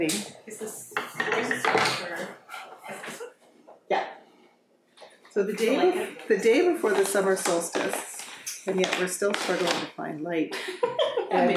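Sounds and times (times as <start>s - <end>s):
speech: 0.0s - 0.6s, 5.4s - 8.1s, 8.7s - 11.5s
dishes and cutlery being cleared away: 1.0s - 3.3s
laughter: 10.5s - 11.5s.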